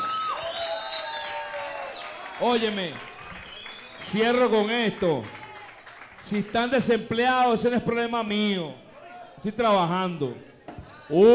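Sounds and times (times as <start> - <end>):
cheering: 0.0 - 6.7
applause: 0.0 - 7.7
speech: 2.4 - 3.1, 4.0 - 5.4, 6.2 - 8.8, 9.4 - 10.5, 11.1 - 11.3.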